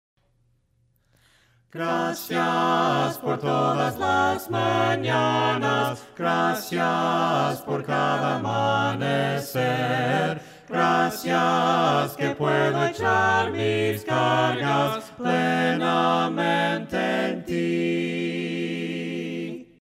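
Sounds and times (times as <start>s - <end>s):
voices singing hymns a cappella: 1.7s - 19.8s.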